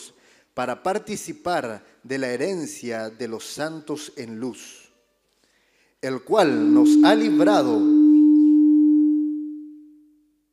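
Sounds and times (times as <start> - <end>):
speech: 0.6 - 4.8, 6.0 - 8.0
audio feedback tone: 6.3 - 10.2.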